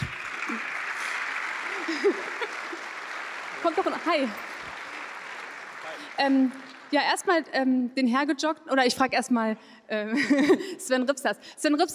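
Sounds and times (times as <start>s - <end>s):
laughter: 0.0s - 3.0s
audience applause: 0.0s - 7.4s
speech: 2.0s - 2.3s, 3.6s - 4.5s, 6.2s - 11.9s.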